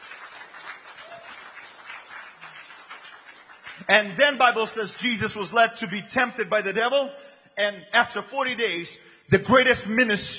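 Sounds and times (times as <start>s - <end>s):
audience clapping hands: 0.0s - 5.3s
speech: 3.8s - 10.3s.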